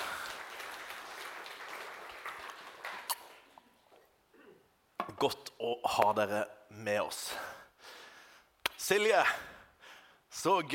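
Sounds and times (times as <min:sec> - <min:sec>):
audience applause: 0:00.0 - 0:03.6
speech: 0:05.1 - 0:07.6, 0:08.8 - 0:09.5, 0:10.3 - 0:10.7.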